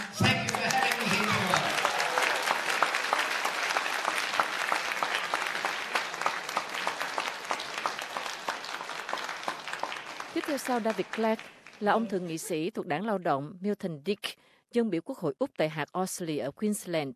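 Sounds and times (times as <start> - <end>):
audience applauding in a hall after a speech: 0.0 - 12.6
speech: 10.6 - 17.1.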